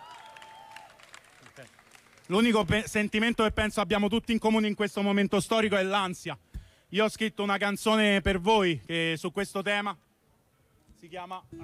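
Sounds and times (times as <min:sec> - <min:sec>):
audience applause: 0:00.0 - 0:02.3
speech: 0:01.6 - 0:10.0, 0:11.0 - 0:11.6.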